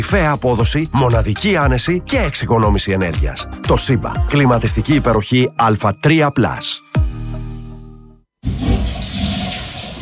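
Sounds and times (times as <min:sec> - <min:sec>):
speech: 0:00.0 - 0:07.3
toilet flushing: 0:08.4 - 0:10.0.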